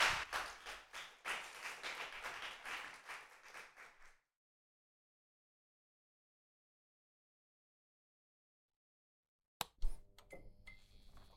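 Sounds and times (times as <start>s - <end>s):
audience applauding: 0.0s - 4.1s.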